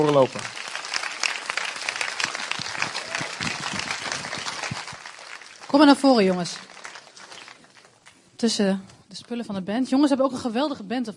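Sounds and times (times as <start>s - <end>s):
speech: 0.0s - 0.6s, 5.7s - 6.7s, 8.4s - 11.1s
audience applause: 0.0s - 8.2s.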